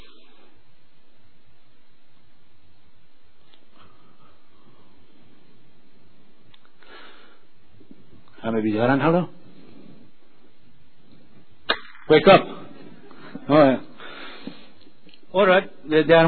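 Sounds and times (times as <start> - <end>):
deep breath: 3.7 - 5.4, 6.8 - 7.6, 13.0 - 14.8
speech: 8.4 - 9.4, 12.1 - 12.6, 13.5 - 13.8, 15.4 - 16.2.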